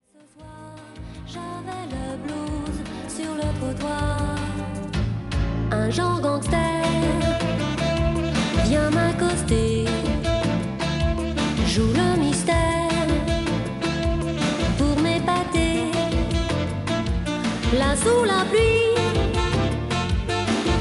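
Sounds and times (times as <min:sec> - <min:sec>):
blues music: 0:00.4 - 0:20.7.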